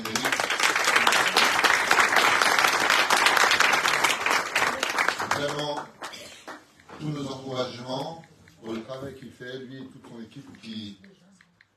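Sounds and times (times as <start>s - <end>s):
audience applause: 0.0s - 6.7s.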